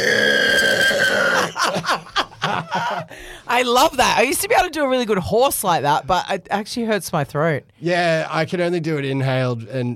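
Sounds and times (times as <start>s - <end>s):
person imitating a pig squeal: 0.0s - 1.5s
laughter: 1.3s - 3.2s
speech: 2.9s - 9.9s.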